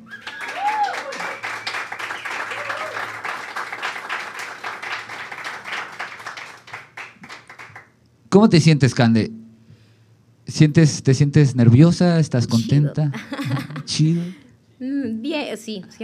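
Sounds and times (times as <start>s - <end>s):
audience applause: 0.0s - 7.9s
speech: 8.4s - 9.4s, 10.5s - 14.4s, 15.5s - 16.0s
laughter: 13.2s - 14.4s.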